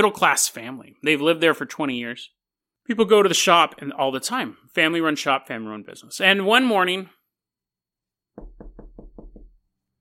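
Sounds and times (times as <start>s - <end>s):
speech: 0.0s - 7.2s
knocking on the door of a family-run shop: 8.3s - 9.7s.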